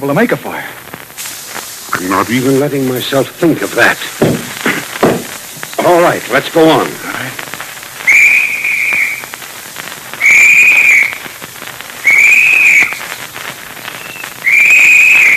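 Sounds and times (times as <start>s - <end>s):
speech: 0.0s - 0.8s, 2.0s - 4.6s, 5.8s - 7.4s
constant hiss: 0.0s - 15.3s
whistle signal blown by boys searching in the dark: 8.0s - 9.4s, 10.1s - 11.4s, 12.0s - 15.3s.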